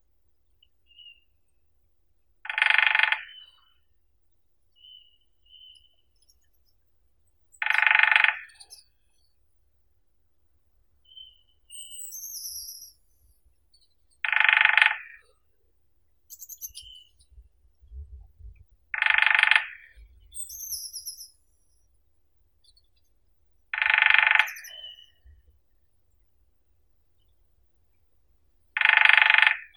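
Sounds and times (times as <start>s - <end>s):
lesser spotted woodpecker Dendrocopos minor: 2.5s - 3.8s, 7.6s - 9.3s, 11.1s - 15.3s, 16.3s - 17.3s, 18.9s - 21.8s, 23.7s - 25.3s, 28.8s - 29.7s.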